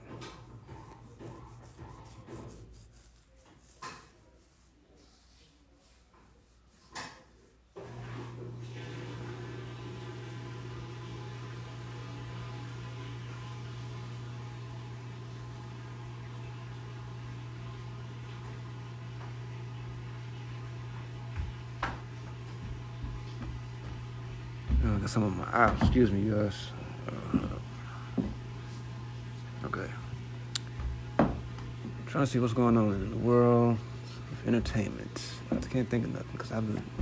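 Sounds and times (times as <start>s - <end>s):
washing machine humming: 0.0s - 37.0s
soft knocks: 24.6s - 26.2s
speech: 25.0s - 26.8s, 32.2s - 37.0s.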